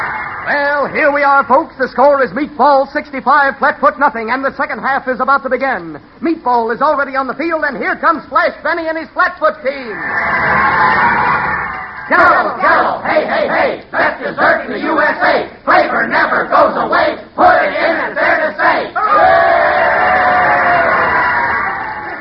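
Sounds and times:
crowd cheering at a sports game: 0:00.0 - 0:01.7, 0:09.8 - 0:22.2
speech: 0:00.4 - 0:11.4, 0:12.1 - 0:19.8.

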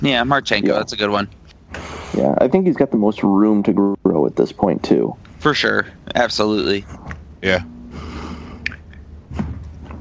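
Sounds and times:
speech: 0:00.0 - 0:01.4, 0:02.1 - 0:08.1
heavy breathing into a microphone: 0:01.7 - 0:02.2, 0:07.9 - 0:08.7
steady low rumble: 0:06.0 - 0:09.8.

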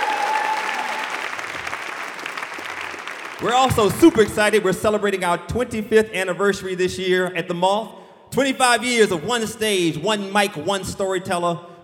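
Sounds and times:
audience applause: 0:00.0 - 0:04.2
speech: 0:03.4 - 0:11.7.

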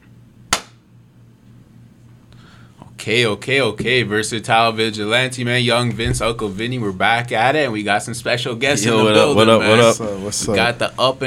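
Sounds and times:
single hand clap: 0:00.5 - 0:00.8
speech: 0:03.0 - 0:11.2.

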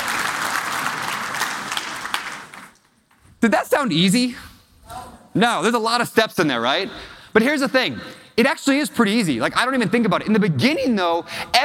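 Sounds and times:
audience applauding themselves: 0:00.0 - 0:03.2
speech: 0:03.4 - 0:04.5, 0:05.3 - 0:11.6.

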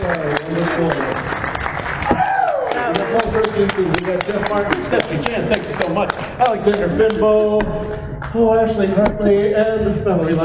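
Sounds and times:
audience applause: 0:00.0 - 0:07.1
speech: 0:03.6 - 0:10.4.

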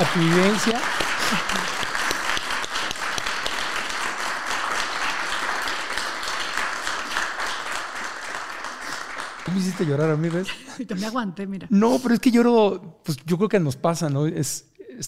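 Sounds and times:
speech: 0:00.0 - 0:01.8, 0:09.5 - 0:15.0
audience applause: 0:00.0 - 0:10.7
laughter: 0:01.1 - 0:02.2, 0:09.5 - 0:11.2.

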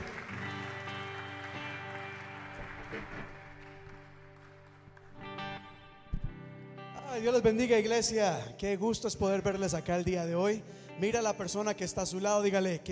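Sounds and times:
audience applauding: 0:00.0 - 0:06.1
sustained keyboard chords: 0:00.0 - 0:12.9
soft thumps: 0:06.1 - 0:06.4
speech: 0:07.1 - 0:12.9.

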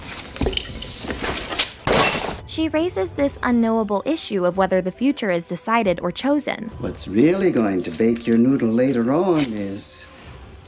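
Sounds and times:
vase knocked over and shattering: 0:00.4 - 0:02.4
speech: 0:02.6 - 0:10.1.

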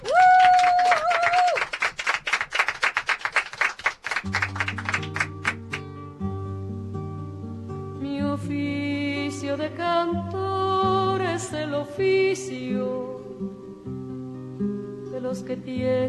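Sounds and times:
small group clapping: 0:00.0 - 0:05.9
music: 0:04.2 - 0:16.0
speech: 0:12.0 - 0:14.0, 0:15.3 - 0:16.0.

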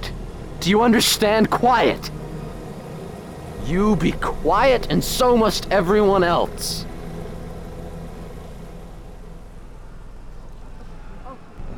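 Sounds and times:
helicopter flying overhead: 0:00.0 - 0:11.7
speech: 0:00.6 - 0:02.2, 0:03.6 - 0:06.9.

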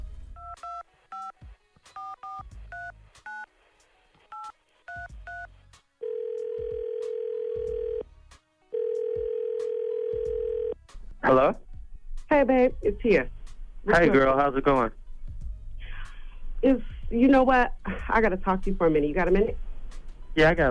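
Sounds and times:
long steady telephone tones after dialing: 0:04.4 - 0:08.0, 0:08.7 - 0:10.8
speech: 0:11.3 - 0:11.6, 0:12.4 - 0:15.0, 0:16.7 - 0:19.6, 0:20.4 - 0:20.6.

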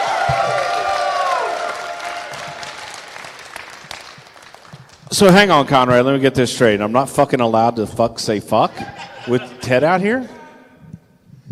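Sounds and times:
audience applause: 0:00.0 - 0:05.2
speech: 0:05.1 - 0:10.4
laughter: 0:08.7 - 0:09.9.

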